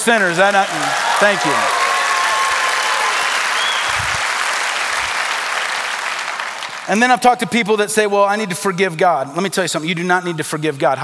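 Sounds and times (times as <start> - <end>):
speech: 0.0 - 1.8, 6.9 - 11.0
audience applause: 0.0 - 7.1.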